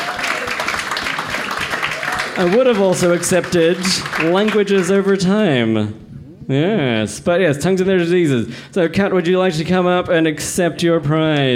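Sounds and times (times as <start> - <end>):
round of applause: 0.0 - 5.5
speech: 2.4 - 11.5.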